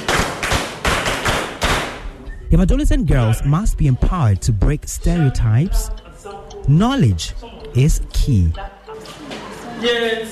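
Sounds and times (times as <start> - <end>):
class clapping hands in a patterned rhythm: 0.0 - 2.3
speech: 2.5 - 9.2, 9.8 - 10.3.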